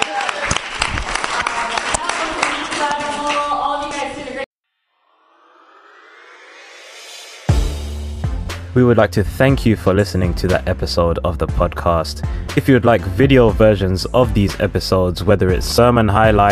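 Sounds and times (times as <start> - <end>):
audience applause: 0.0 - 4.2
speech: 8.8 - 16.4.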